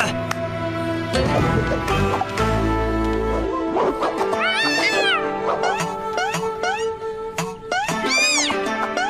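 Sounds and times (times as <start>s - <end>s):
steady tonal background: 0.0s - 9.0s
cats meowing: 4.3s - 5.3s, 8.0s - 8.6s.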